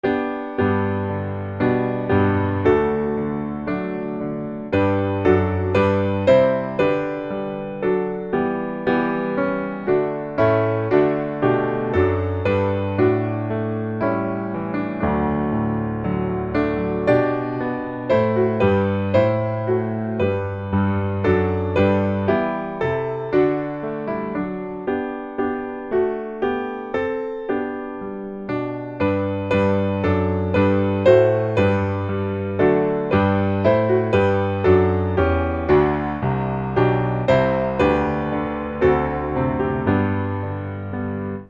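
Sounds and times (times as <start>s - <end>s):
piano: 0.0s - 41.4s.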